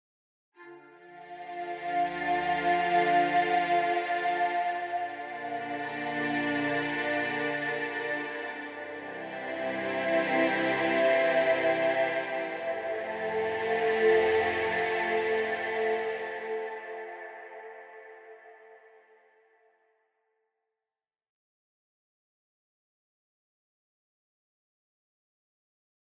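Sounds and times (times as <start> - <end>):
analog synth strings preset: 0.6 - 18.6.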